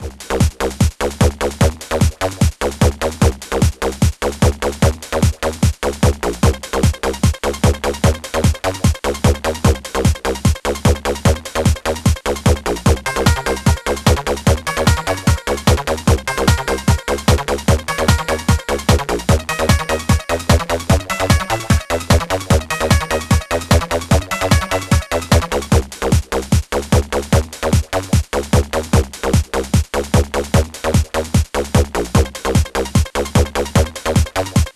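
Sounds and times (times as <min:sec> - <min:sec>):
techno beat: 0:00.0 - 0:34.7.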